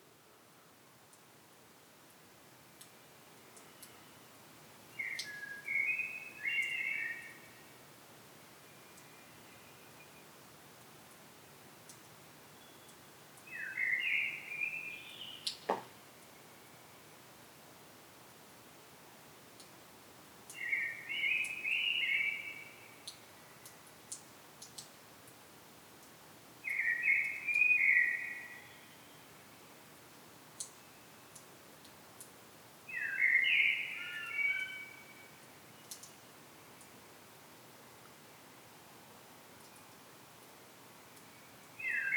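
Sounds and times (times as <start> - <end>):
faint hiss: 0.0 - 42.1
common blackbird warbled phrases: 5.0 - 7.5, 12.6 - 15.7, 20.6 - 22.8, 26.7 - 29.2, 32.9 - 36.0, 41.2 - 42.1
sharp knock: 15.7 - 15.9.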